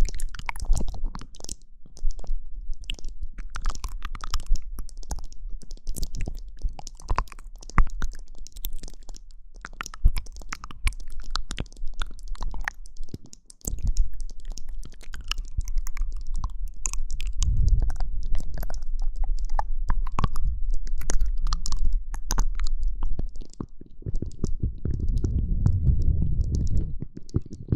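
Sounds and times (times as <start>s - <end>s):
wet mouth clicks and smacks: 0.0s - 27.7s
steady low rumble: 16.8s - 23.2s, 24.1s - 27.1s
heavier low gurgling bursts: 17.2s - 22.6s, 24.0s - 27.1s.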